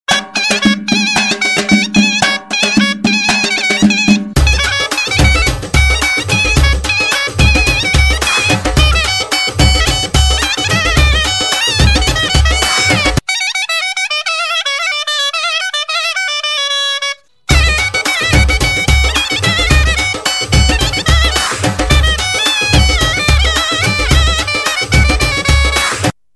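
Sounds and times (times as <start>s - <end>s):
Armenian zurna: 0.1s - 26.2s.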